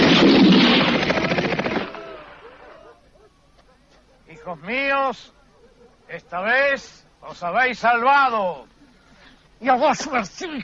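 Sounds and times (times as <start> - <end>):
firing squad gunfire volley in a radio drama: 0.0 - 2.4
speech: 4.5 - 5.4, 6.1 - 8.7, 9.6 - 10.6.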